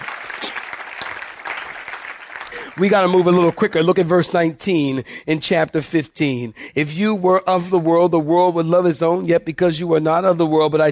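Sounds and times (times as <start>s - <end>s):
audience clapping hands: 0.0s - 4.1s
speech: 2.8s - 10.8s.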